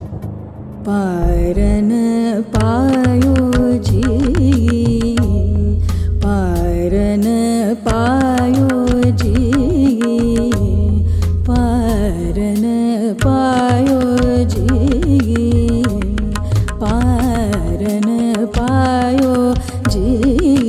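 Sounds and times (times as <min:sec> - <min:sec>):
soothing Aubhogi raga music: 0:00.0 - 0:20.6.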